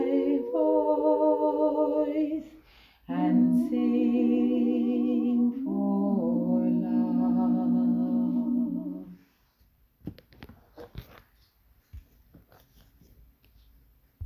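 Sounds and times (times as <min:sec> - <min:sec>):
soprano and alto learning tracks: 0:00.0 - 0:09.2.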